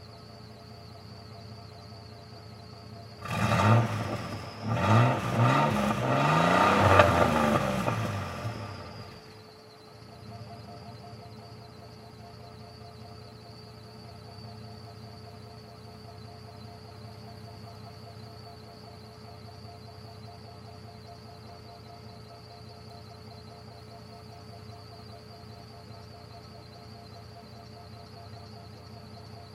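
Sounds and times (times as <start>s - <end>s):
1996 Chevy Blazer engine starting revving idling and shutting off at exhaust pipe: 3.1s - 9.5s.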